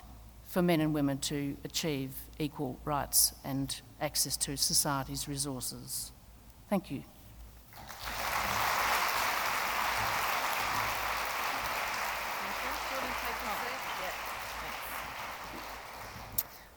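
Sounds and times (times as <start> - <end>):
speech: 0.5 - 7.2
audience applause after a speech: 7.8 - 16.7.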